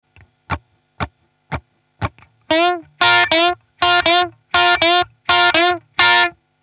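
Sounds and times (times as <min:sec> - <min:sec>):
blues guitar: 0:02.0 - 0:06.4.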